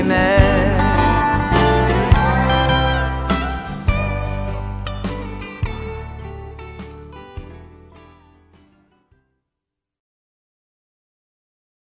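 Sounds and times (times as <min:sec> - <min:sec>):
waltz music: 0:00.4 - 0:06.6.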